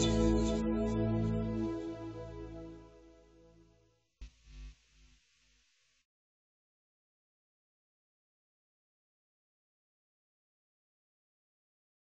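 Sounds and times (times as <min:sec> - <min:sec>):
bass: 0:00.0 - 0:04.9.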